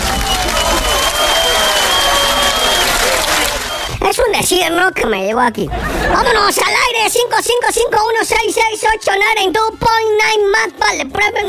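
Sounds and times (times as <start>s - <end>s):
applause: 0.0s - 4.0s
speech: 4.3s - 11.4s.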